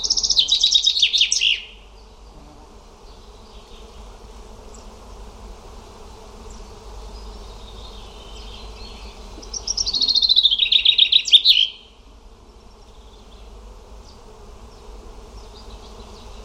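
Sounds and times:
bird song of quick repeated high chirping notes: 0.0 - 1.8, 7.3 - 11.9.

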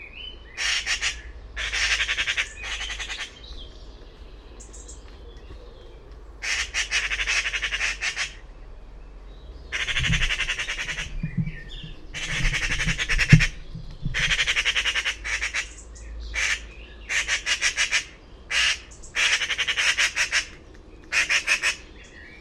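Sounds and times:
bird squawking: 0.6 - 3.5, 6.4 - 8.4, 9.7 - 22.1.

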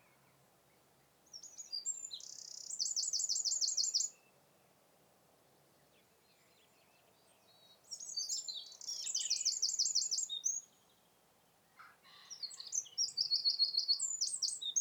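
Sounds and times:
Eurasian wren Troglodytes troglodytes singing: 1.3 - 4.2, 7.4 - 10.9, 12.3 - 14.7.

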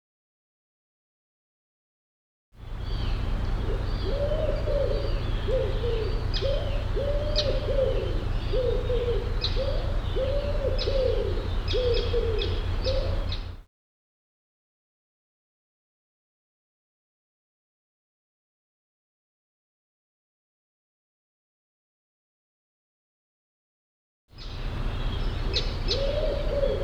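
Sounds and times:
low hooting arched bird calls: 2.6 - 13.6, 24.4 - 26.8.

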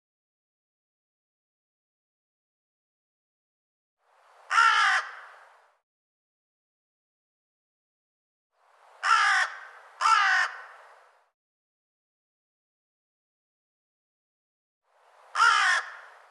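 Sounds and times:
harsh raspy bird caw: 4.5 - 5.4, 9.0 - 10.8, 15.3 - 16.2.

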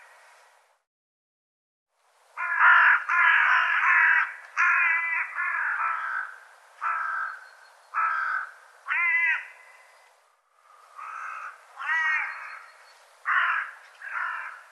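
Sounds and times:
bird calling with rough grating caws: 2.4 - 10.0, 10.6 - 14.7.

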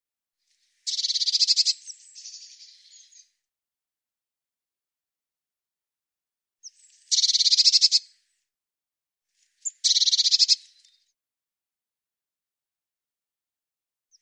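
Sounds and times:
bird song with repeated high buzzy trilled phrases: 0.8 - 3.4, 6.6 - 8.1, 9.6 - 11.2.

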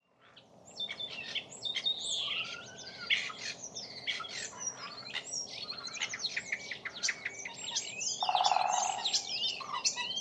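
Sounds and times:
birds chirping and twittering: 0.0 - 10.1.

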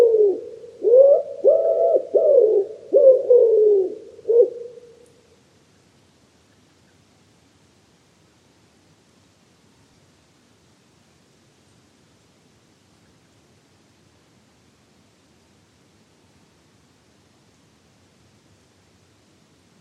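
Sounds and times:
common wood pigeon cooing: 0.0 - 5.0.

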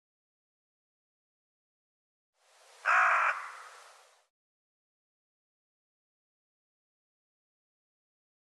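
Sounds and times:
bird harsh caw: 2.8 - 4.0.

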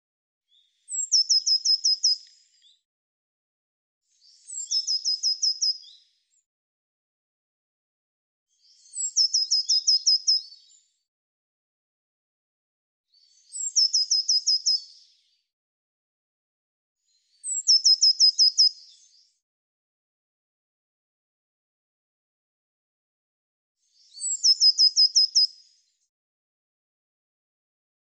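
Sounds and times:
bird singing sharp descending chirps: 0.5 - 2.8, 4.1 - 6.2, 8.5 - 10.9, 13.1 - 15.3, 17.1 - 19.4, 23.8 - 25.6.

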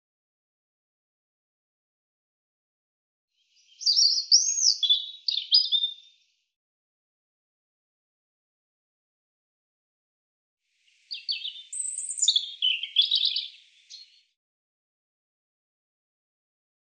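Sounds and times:
European robin song: 3.4 - 6.5, 10.8 - 14.4.

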